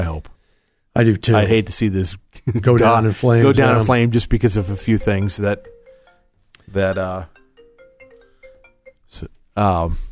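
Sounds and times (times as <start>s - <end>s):
speech: 1.0s - 5.7s, 6.7s - 7.4s, 9.1s - 10.0s
phone ringing: 2.9s - 9.1s.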